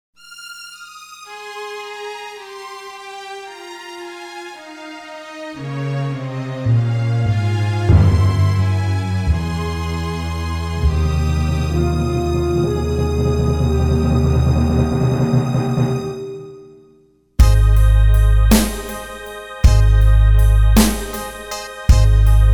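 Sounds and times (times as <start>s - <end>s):
backing track in the key of Ab without saxophone: 1.3s - 16.6s, 17.4s - 22.5s.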